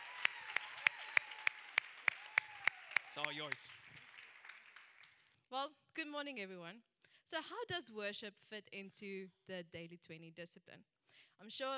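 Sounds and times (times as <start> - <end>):
audience applause: 0.0 - 5.2
speech: 3.2 - 3.9, 5.5 - 11.7.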